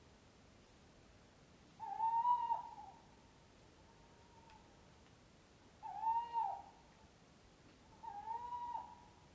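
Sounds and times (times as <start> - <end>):
owl hooting: 1.7 - 3.0, 5.8 - 6.8, 7.9 - 9.1.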